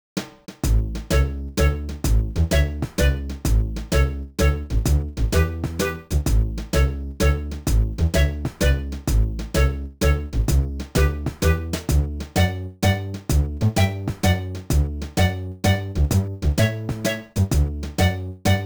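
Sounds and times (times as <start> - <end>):
course clear video game jingle: 1.1 - 6.2, 6.8 - 9.0, 9.6 - 18.6.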